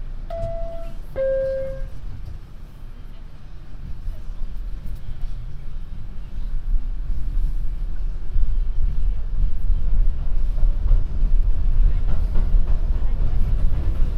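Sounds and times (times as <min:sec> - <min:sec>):
subway train rumble: 0:00.0 - 0:14.1
subway door signal chime: 0:00.3 - 0:01.9.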